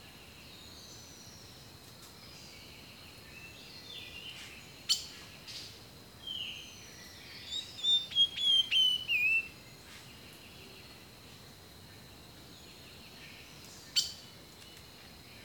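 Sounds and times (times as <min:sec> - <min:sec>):
rainforest bird song with chirp and downward whistled notes: 0:07.8 - 0:09.4.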